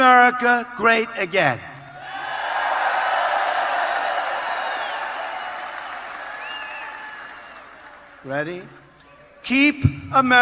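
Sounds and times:
speech: 0:00.0 - 0:01.7, 0:08.2 - 0:08.8, 0:09.4 - 0:10.4
scattered cheers and whoops: 0:02.0 - 0:08.1
crowd applause: 0:02.0 - 0:09.0.

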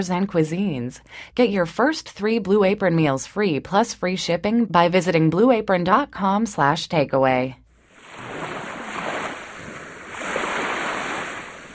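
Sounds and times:
speech: 0:00.0 - 0:07.6
ocean waves: 0:07.8 - 0:11.7.

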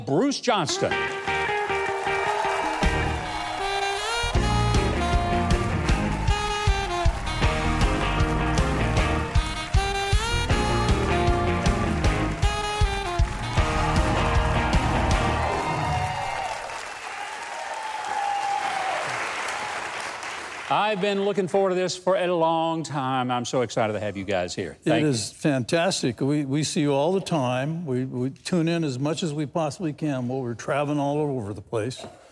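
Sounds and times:
speech: 0:00.1 - 0:01.2, 0:20.8 - 0:32.3
audience applause: 0:00.9 - 0:21.0
cheering voices: 0:01.1 - 0:19.9.

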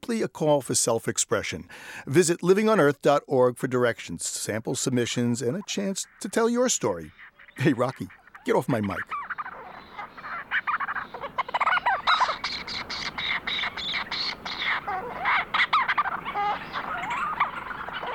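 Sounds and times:
speech: 0:00.1 - 0:09.3
flock of Leach's storm petrels calling: 0:05.1 - 0:18.1.

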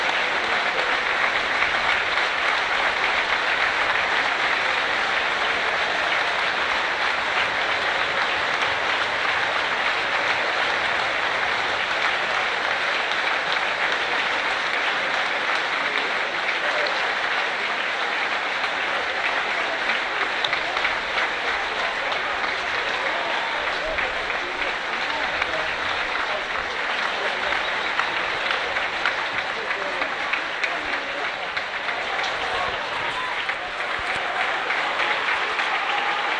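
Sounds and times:
stadium fans applauding: 0:00.0 - 0:36.3.

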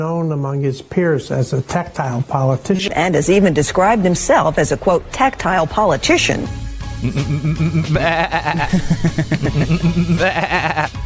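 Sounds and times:
speech: 0:00.0 - 0:11.0
laughter: 0:07.0 - 0:11.0
sheep bleating: 0:08.0 - 0:08.6.

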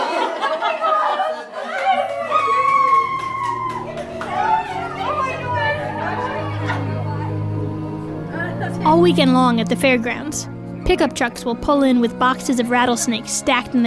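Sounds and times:
bursts of laughter: 0:00.0 - 0:07.4
large overflow crowd chattering: 0:00.0 - 0:09.6
speech: 0:09.0 - 0:13.8.

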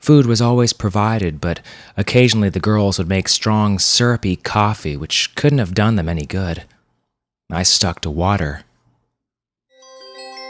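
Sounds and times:
speech: 0:00.0 - 0:06.7, 0:07.5 - 0:08.7
brass bell ringing above a door: 0:09.8 - 0:10.4.

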